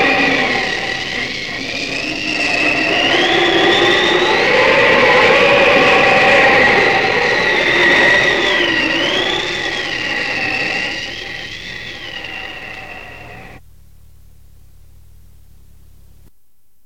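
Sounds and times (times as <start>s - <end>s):
snowstorm: 0.0s - 16.3s.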